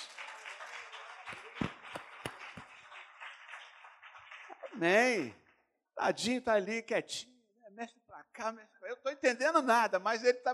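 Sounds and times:
audience clapping: 0.0 - 5.6
speech: 4.8 - 5.4, 6.0 - 10.5.

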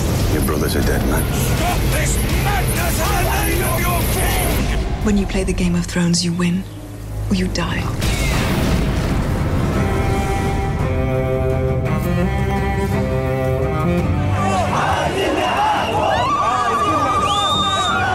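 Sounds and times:
music: 0.0 - 18.1
speech: 0.5 - 8.2
Egyptian protesters roaring during the revolution: 1.4 - 4.7, 14.0 - 18.1.

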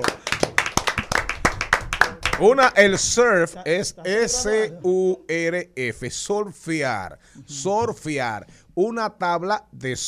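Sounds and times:
audience applause: 0.0 - 3.6
laughter: 2.2 - 5.5
speech: 2.4 - 10.0.

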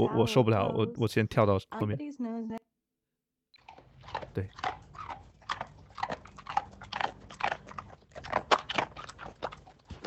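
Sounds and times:
speech: 0.0 - 2.7, 4.1 - 4.8
dog eating, chewing food: 3.6 - 10.0.

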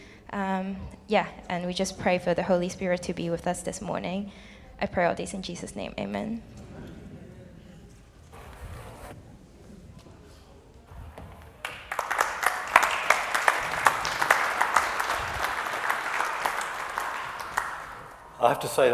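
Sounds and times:
speech: 0.3 - 6.6, 18.6 - 18.9
audience applause: 11.6 - 18.9.

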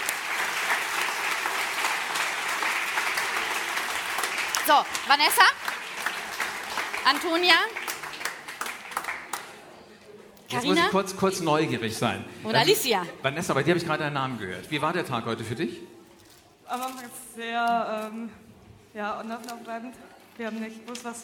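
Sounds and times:
audience applause: 0.0 - 9.7
speech: 4.7 - 5.7, 7.1 - 7.8, 10.5 - 15.9, 16.7 - 21.2.

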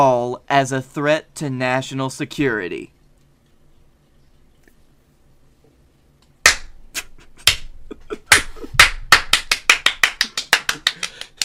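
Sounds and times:
speech: 0.0 - 3.0
applause: 9.1 - 11.4.

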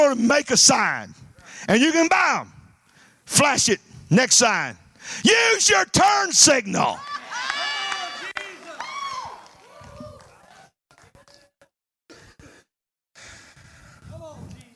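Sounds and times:
speech: 0.1 - 2.6, 3.3 - 7.2
audience shouting back at speaker: 5.3 - 9.5.

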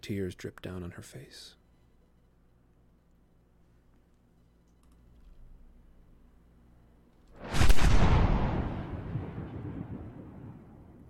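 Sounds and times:
speech: 0.0 - 1.6
cannon boom: 7.4 - 11.0.

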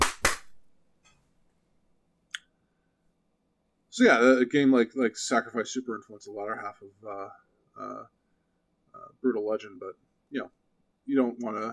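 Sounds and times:
single hand clap: 0.0 - 0.6
speech: 4.0 - 8.2, 9.0 - 11.7.

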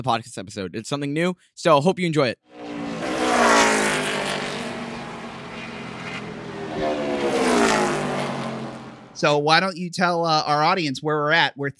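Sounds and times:
speech: 0.0 - 2.9, 9.2 - 11.7
NASCAR race cars roaring through the final laps: 2.5 - 9.4.

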